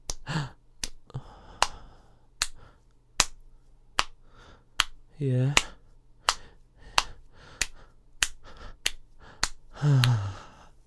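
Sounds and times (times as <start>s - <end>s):
rhythmic skin slaps: 0.0s - 2.6s, 3.2s - 3.4s, 4.0s - 4.2s, 4.8s - 10.2s
speech: 5.2s - 5.7s
short voiced moan: 9.8s - 10.6s.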